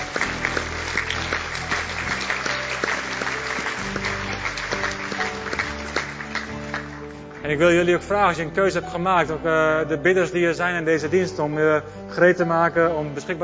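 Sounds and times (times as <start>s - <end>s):
audience applause: 0.0s - 7.4s
speech: 7.5s - 13.4s.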